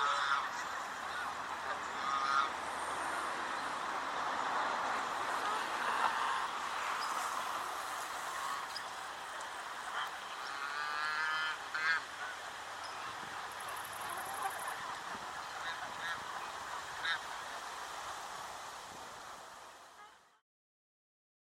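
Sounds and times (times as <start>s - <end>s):
swan goose: 0.0s - 17.8s, 19.8s - 20.4s.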